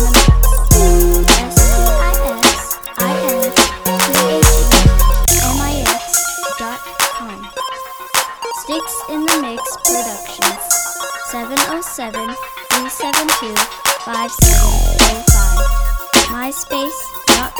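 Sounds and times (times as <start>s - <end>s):
crunk club music: 0.0s - 17.5s.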